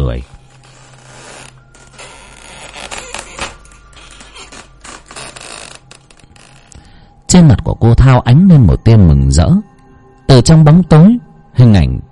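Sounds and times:
wooden cabinet door slowly creaking open: 0:00.0 - 0:06.9
speech: 0:00.1 - 0:00.4, 0:07.4 - 0:09.7, 0:10.3 - 0:12.1.

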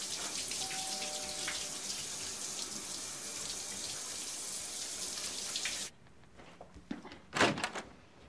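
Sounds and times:
shower water running: 0:00.0 - 0:05.9.

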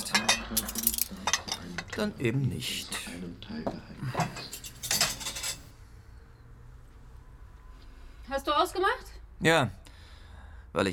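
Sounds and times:
dishes and cutlery clinking as a table is cleared after a meal: 0:00.0 - 0:02.1, 0:04.1 - 0:05.7
speech: 0:02.0 - 0:04.5, 0:09.4 - 0:09.8, 0:10.8 - 0:10.9.

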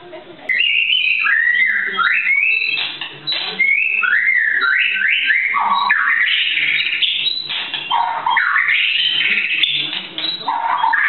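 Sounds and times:
white-rumped shama singing: 0:00.5 - 0:11.0.

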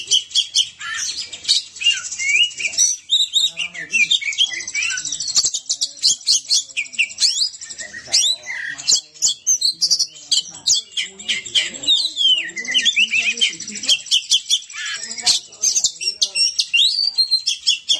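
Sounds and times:
Oriental magpie-robin whistling and chattering: 0:00.0 - 0:17.9.

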